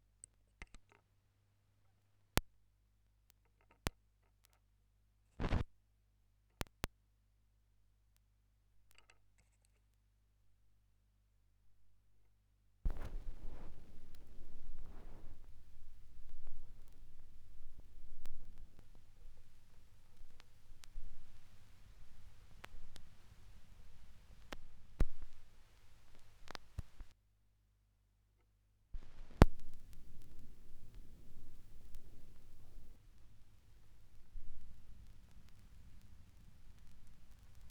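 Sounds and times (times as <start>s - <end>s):
vinyl record noise from a vinyl rip: 5.4s - 5.7s, 12.9s - 27.2s, 29.0s - 37.7s.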